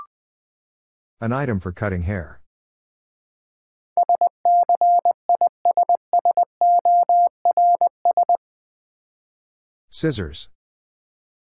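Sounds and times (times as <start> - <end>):
speech: 1.2 - 2.4, 10.0 - 10.6
Morse code tones at 20 words per minute: 4.0 - 8.4.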